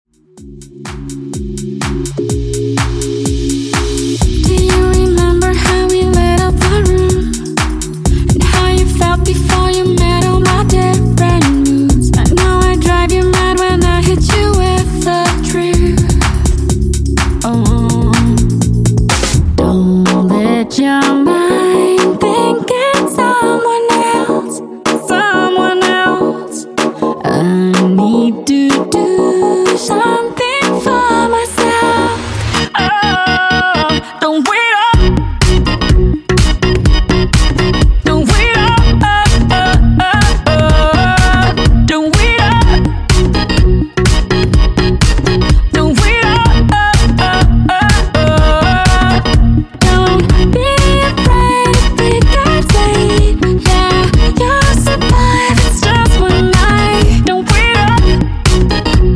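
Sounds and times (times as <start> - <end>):
club mix music at 125 bpm: 0.1 - 59.1.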